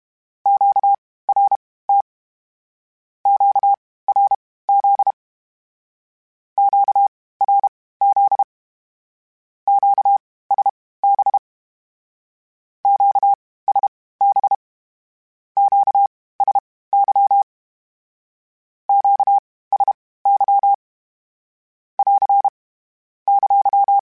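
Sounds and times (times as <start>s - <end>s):
Morse code Q calls in CW code groups: 0.5s - 2.0s, 3.3s - 5.2s, 6.6s - 8.5s, 9.7s - 11.4s, 12.9s - 14.6s, 15.6s - 17.5s, 18.9s - 20.8s, 22.0s - 22.6s, 23.3s - 24.0s.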